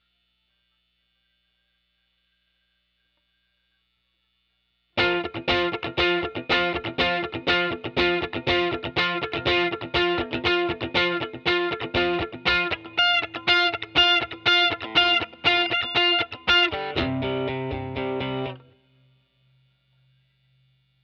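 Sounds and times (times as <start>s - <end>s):
guitar: 5.0s - 19.2s.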